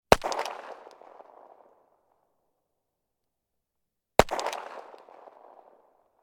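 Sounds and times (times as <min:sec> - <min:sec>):
1911 pistol gunshot: 0:00.1 - 0:01.8, 0:04.2 - 0:05.9.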